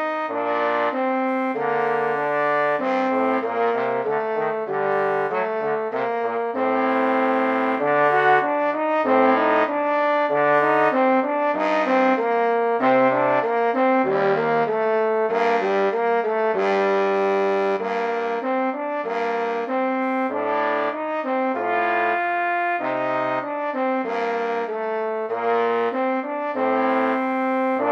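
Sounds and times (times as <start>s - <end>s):
brass instruments playing: 0.0s - 27.8s.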